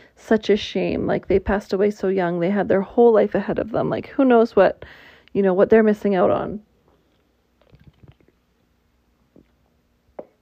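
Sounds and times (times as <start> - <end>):
speech: 0.3 - 6.7
drinking a sip of water: 6.9 - 8.5.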